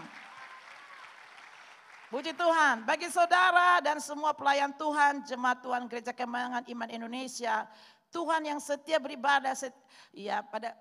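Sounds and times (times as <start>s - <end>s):
crowd applauding: 0.0s - 2.4s
speech: 2.1s - 10.7s.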